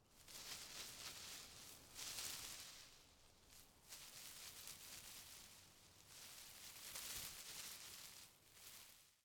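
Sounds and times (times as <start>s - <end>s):
bush leaves rustling: 0.2s - 9.2s.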